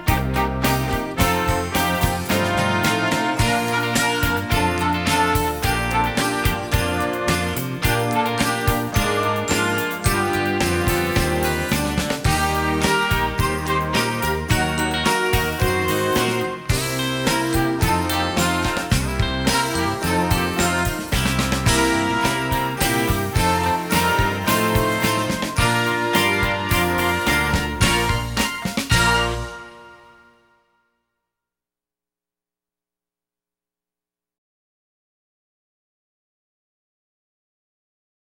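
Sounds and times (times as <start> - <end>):
band playing: 0.0 - 30.3.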